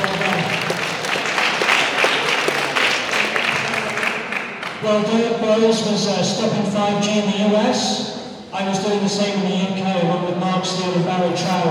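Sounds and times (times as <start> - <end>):
audience round of applause: 0.0 - 4.8
speech: 4.8 - 11.6.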